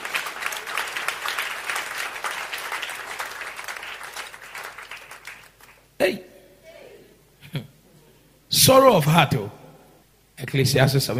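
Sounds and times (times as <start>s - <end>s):
audience clapping: 0.0s - 5.9s
speech: 8.7s - 9.6s, 10.4s - 11.1s.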